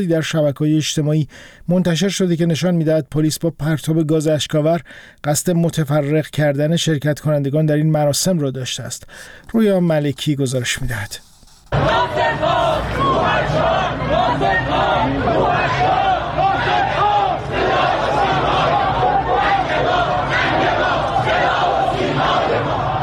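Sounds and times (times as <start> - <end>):
speech: 0.0 - 17.0
crowd shouting and chanting at a funeral procession: 11.7 - 23.0.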